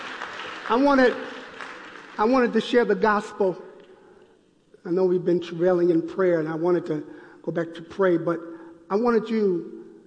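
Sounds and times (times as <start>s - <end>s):
audience clapping: 0.0s - 2.8s
speech: 0.7s - 1.3s, 2.2s - 3.7s, 4.8s - 9.8s.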